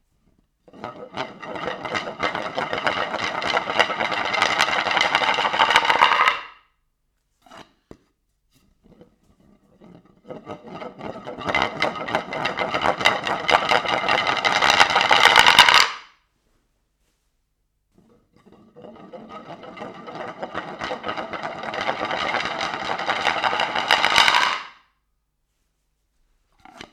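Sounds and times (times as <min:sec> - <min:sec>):
wooden board accelerando: 0:00.7 - 0:06.5, 0:10.3 - 0:16.0, 0:18.7 - 0:24.8.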